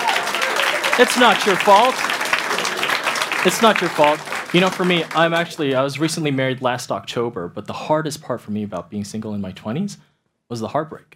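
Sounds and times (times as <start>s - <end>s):
audience clapping for a group: 0.0s - 6.6s
speech: 1.0s - 2.2s, 3.4s - 11.1s.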